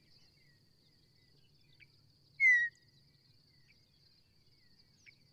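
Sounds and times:
bird singing chirps and trills: 2.4s - 2.8s.

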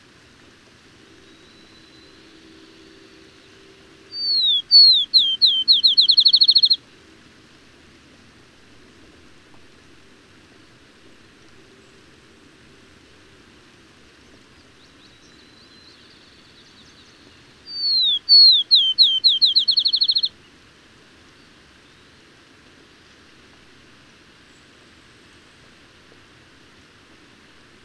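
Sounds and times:
bird whistling then trilling: 4.1s - 6.8s, 17.7s - 20.3s.

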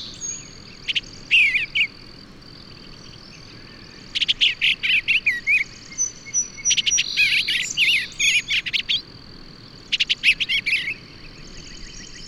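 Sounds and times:
bird song: 0.0s - 12.2s.

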